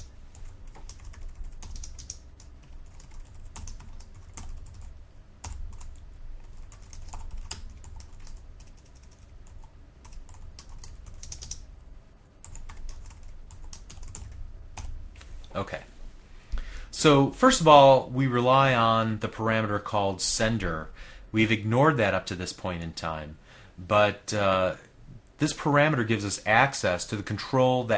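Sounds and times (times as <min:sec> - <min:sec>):
code being typed on a computer keyboard: 0:00.0 - 0:11.6, 0:12.4 - 0:14.9
speech: 0:15.6 - 0:15.9, 0:16.9 - 0:27.9.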